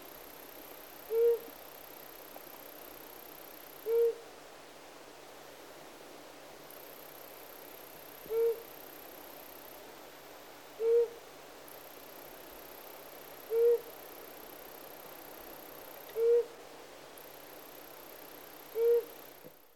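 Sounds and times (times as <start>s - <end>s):
Flammulated Owl Psiloscops flammeolus calling: 1.1s - 1.5s, 3.8s - 4.2s, 13.5s - 13.9s, 16.1s - 16.6s, 18.7s - 19.2s.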